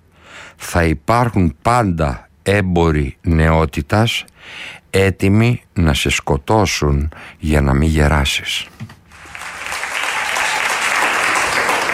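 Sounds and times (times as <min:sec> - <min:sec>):
speech: 0:00.7 - 0:08.9
audience applause: 0:09.1 - 0:11.9.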